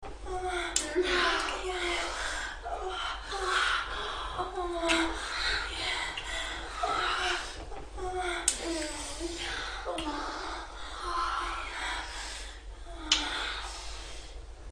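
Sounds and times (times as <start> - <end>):
person moaning during sex: 0.3 - 11.8.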